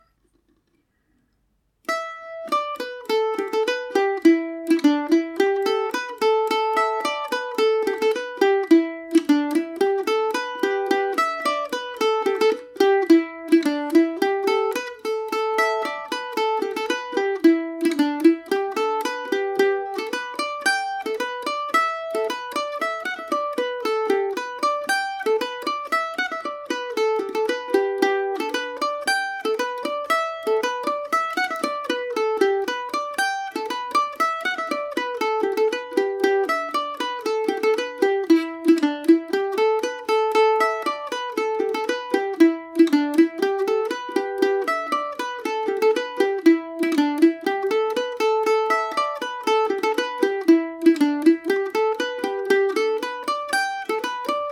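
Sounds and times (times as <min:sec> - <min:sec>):
polka in G major on mandolin: 0:01.6 - 0:54.5.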